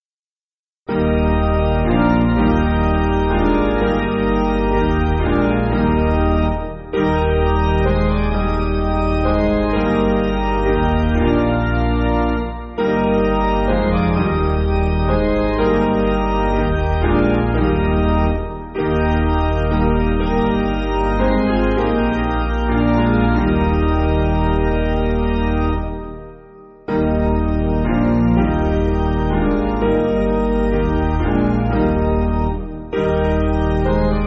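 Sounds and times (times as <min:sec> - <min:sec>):
piano: 0:00.9 - 0:34.2.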